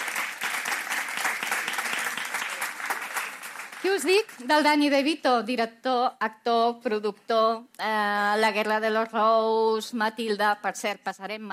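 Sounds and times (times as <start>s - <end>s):
audience applause: 0.0s - 4.4s
speech: 3.8s - 11.5s.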